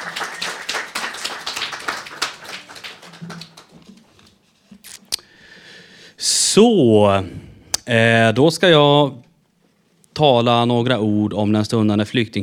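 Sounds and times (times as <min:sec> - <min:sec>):
audience applause: 0:00.0 - 0:03.9
speech: 0:06.6 - 0:09.3, 0:10.2 - 0:12.4.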